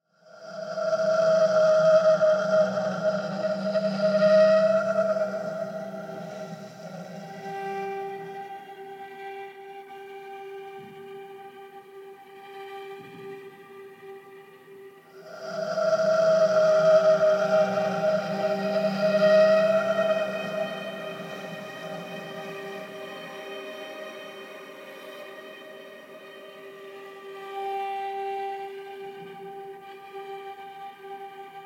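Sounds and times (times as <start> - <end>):
noise: 0.2 - 31.6.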